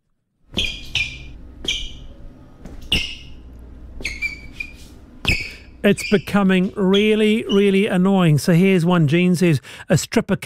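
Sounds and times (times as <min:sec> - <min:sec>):
shoes squeaking on office hall floor: 0:00.5 - 0:08.0
speech: 0:05.8 - 0:10.4.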